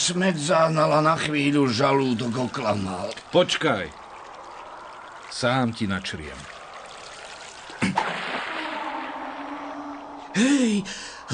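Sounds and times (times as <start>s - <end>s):
speech: 0.0s - 4.0s, 5.3s - 6.6s, 10.4s - 11.3s
churning hiss of disturbed water: 0.0s - 11.3s
sword slicing into the water of a small clear spring: 7.8s - 9.5s.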